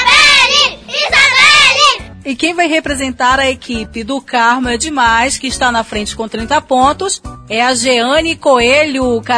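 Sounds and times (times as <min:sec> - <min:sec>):
children cheering for a team member: 0:00.1 - 0:02.0
speech: 0:02.3 - 0:09.3.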